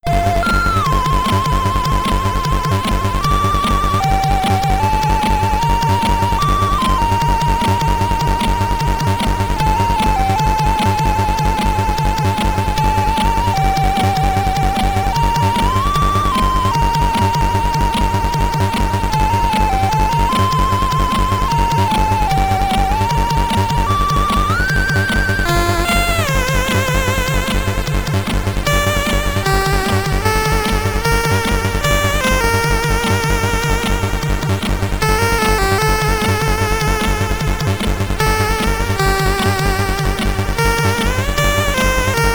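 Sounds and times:
Commodore 64 SID chip stage game music: 0.0 - 42.3.

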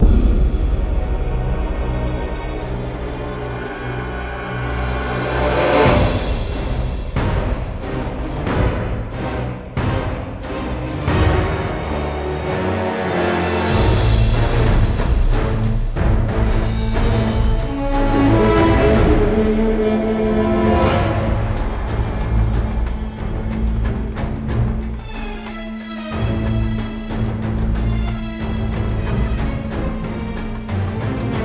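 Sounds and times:
cinematic combat music: 0.0 - 31.4.

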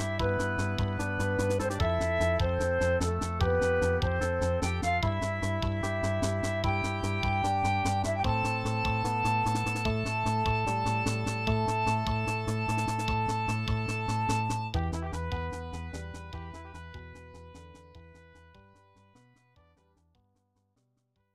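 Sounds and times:
battle music: 0.0 - 16.9.

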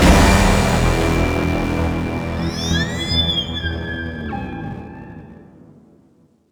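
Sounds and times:
music sting: 0.0 - 4.8.

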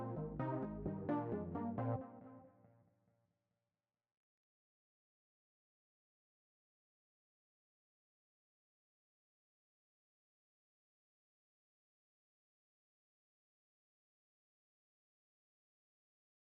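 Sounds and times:
synths: 0.0 - 2.5.

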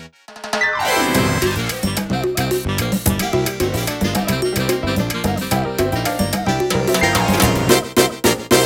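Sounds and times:
jingle: 0.3 - 8.5.

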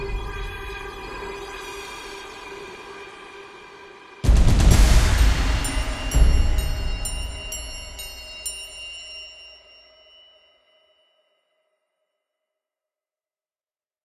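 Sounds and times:
tense boss music: 0.0 - 10.0.

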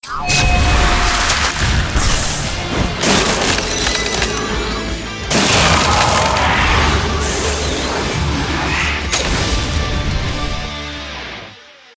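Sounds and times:
Chinese battle music: 0.2 - 11.4.

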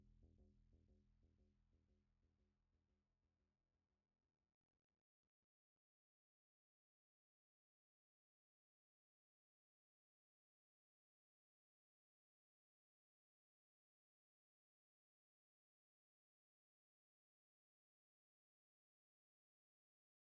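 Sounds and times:
bass: 0.0 - 2.0.

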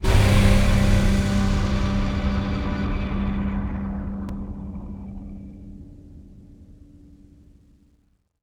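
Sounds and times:
reveal music sting: 0.0 - 6.7.

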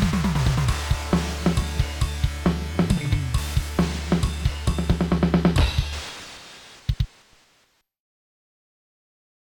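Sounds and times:
broken beats: 0.0 - 7.2.

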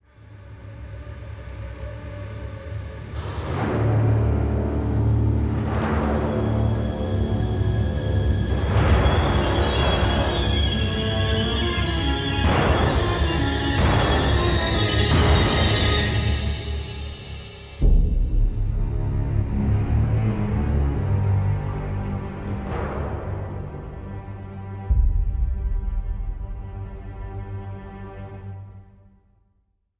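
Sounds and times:
hatchery music: 0.0 - 29.9.

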